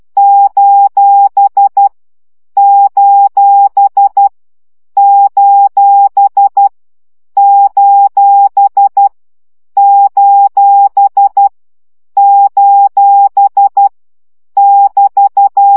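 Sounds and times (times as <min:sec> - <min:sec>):
CW Morse code practice beeps: 0:00.2 - 0:01.9, 0:02.6 - 0:04.3, 0:05.0 - 0:06.7, 0:07.4 - 0:09.1, 0:09.8 - 0:11.5, 0:12.2 - 0:13.9, 0:14.6 - 0:15.7.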